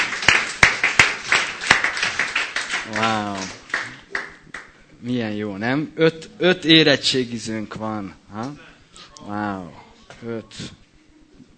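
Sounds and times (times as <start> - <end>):
audience applause: 0.0 - 4.7
speech: 2.9 - 3.6, 5.0 - 10.8.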